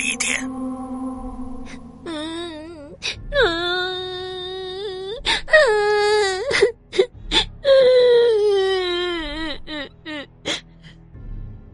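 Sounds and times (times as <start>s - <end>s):
girl crying: 2.0s - 10.6s.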